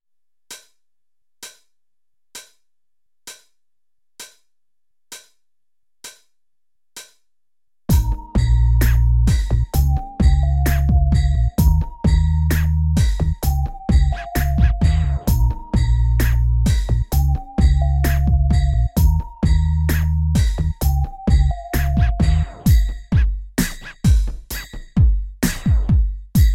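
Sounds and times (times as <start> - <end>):
straight hip hop beat: 7.9 - 26.5.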